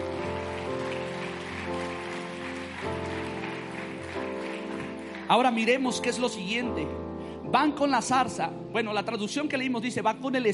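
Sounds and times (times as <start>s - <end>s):
crowd applause: 0.0s - 6.3s
sustained keyboard chords: 0.0s - 10.5s
speech: 5.3s - 10.5s.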